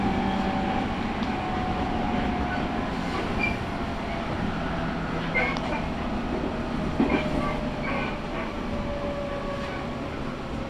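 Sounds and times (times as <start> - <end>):
Tokaido Line train rumble on the platform: 0.0 - 10.6.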